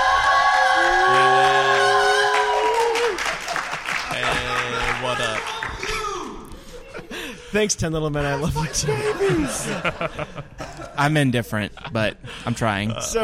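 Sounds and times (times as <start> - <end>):
crowd applauding: 0.0 - 6.6
laughter: 1.0 - 5.3, 6.4 - 7.5, 8.2 - 13.2
speech: 7.6 - 13.2.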